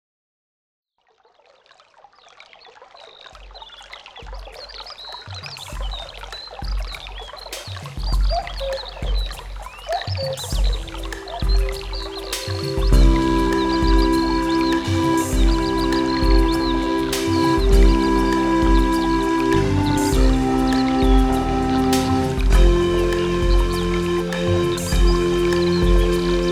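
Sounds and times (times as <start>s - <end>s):
nature film melody: 2.0s - 26.5s.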